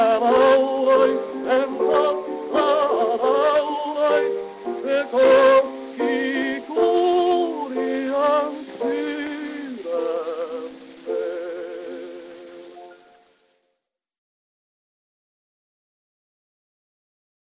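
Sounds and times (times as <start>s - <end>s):
gramophone playing: 0.0s - 13.4s.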